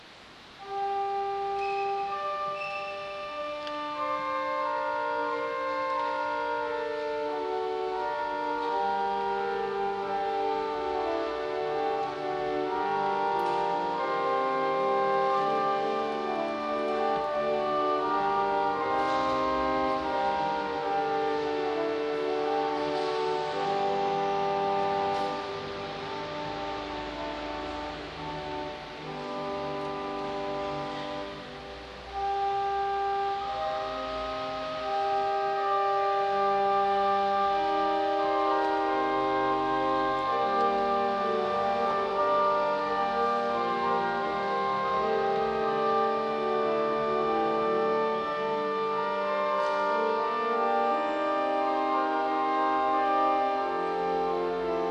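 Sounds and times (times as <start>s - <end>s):
organ interlude: 0.0s - 54.8s.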